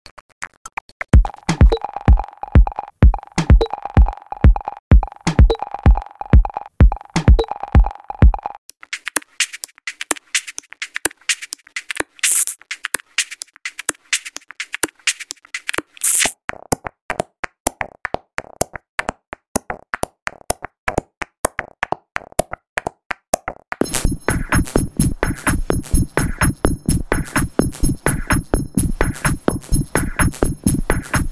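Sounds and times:
click loops: 1.1s - 16.3s, 23.8s - 31.3s.

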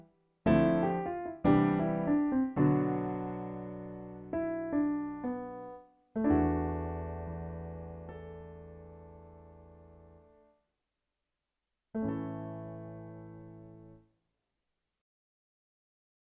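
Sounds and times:
Roland BK3 piano: 0.0s - 10.5s, 12.0s - 14.0s.

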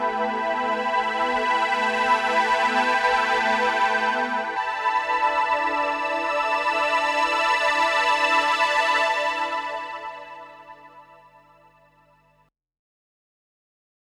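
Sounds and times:
string ensemble with chorus effect: 0.0s - 11.2s.

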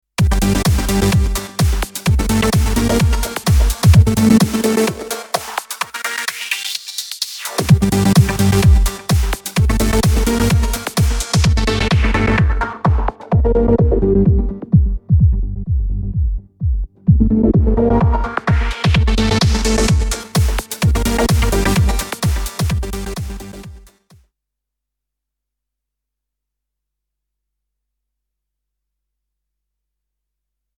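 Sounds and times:
DJM 350 DJ mixer filter effect: 0.2s - 23.8s.

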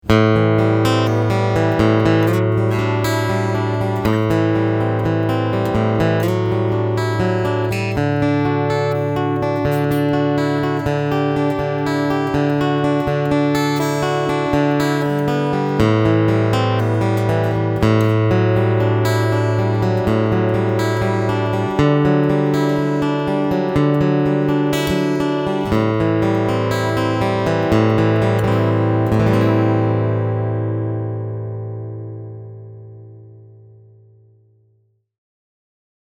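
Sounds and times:
Epiphone J-45 guitar picking: 0.0s - 34.3s.

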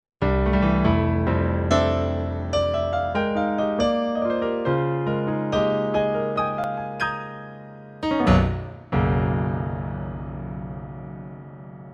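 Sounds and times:
piano: 0.2s - 11.9s.

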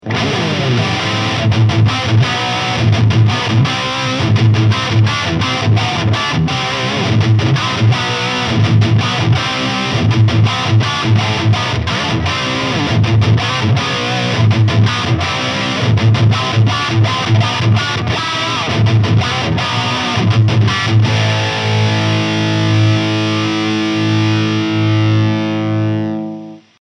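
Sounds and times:
heavy high-gain electric guitar through Mooer GTRS amp: 0.0s - 26.8s.

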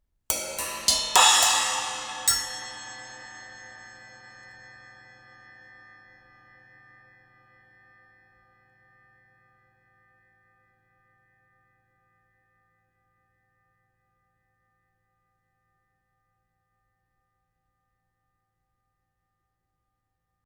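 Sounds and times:
cymbal: 0.3s - 6.6s.

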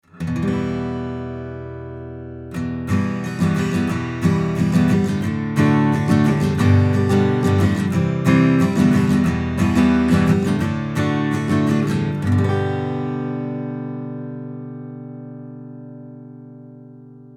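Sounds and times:
acoustic guitar chords recorded with U67 omni microphone: 0.0s - 17.3s.

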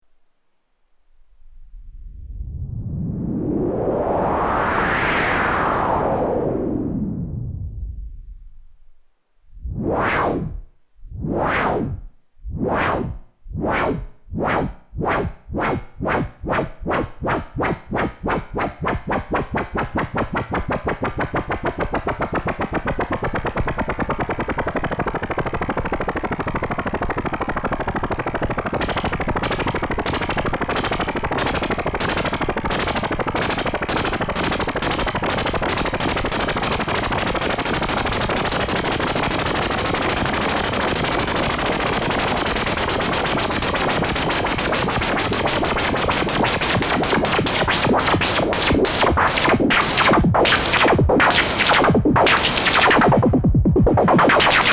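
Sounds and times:
noise with both modulations: 0.0s - 54.7s.

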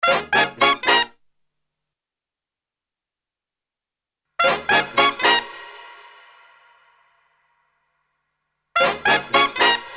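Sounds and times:
brass instruments: 0.0s - 1.2s, 4.4s - 7.6s, 8.8s - 9.9s.

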